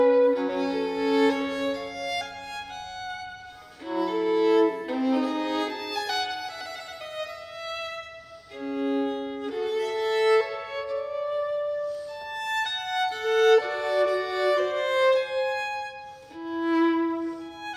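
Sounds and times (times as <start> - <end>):
solo violin sonata in G minor: 0.0 - 17.7.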